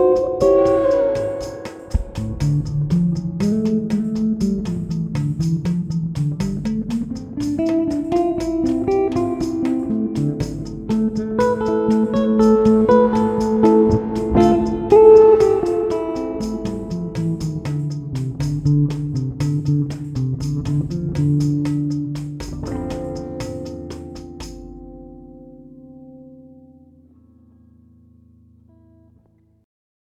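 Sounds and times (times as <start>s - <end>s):
samba swing music: 0.0s - 23.6s.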